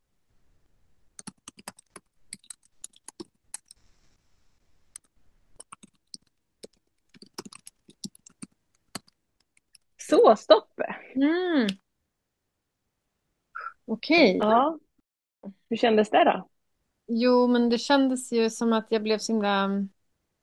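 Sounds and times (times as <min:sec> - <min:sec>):
typing on a computer keyboard: 0:01.2 - 0:03.8, 0:04.9 - 0:09.9
speech: 0:10.2 - 0:11.8, 0:13.9 - 0:14.8, 0:15.7 - 0:16.5, 0:17.1 - 0:20.0.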